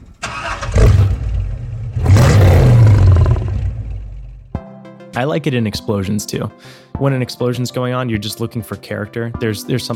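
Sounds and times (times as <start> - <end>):
car engine starting: 0.0 - 4.5
lion roar: 2.0 - 4.4
speech: 5.2 - 9.9.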